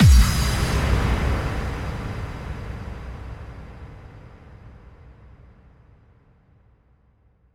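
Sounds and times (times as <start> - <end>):
bass drum kick with reverb: 0.0 - 1.6.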